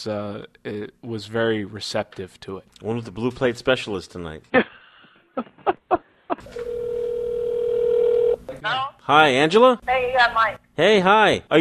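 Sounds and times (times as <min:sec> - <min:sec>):
speech: 0:00.0 - 0:04.7, 0:08.6 - 0:11.5
phone ringing for an incoming call: 0:06.4 - 0:08.4.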